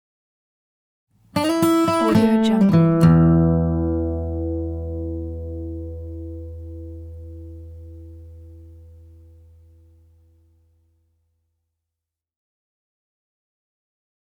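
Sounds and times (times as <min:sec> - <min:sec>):
acoustic blues idents: 0:01.3 - 0:09.8.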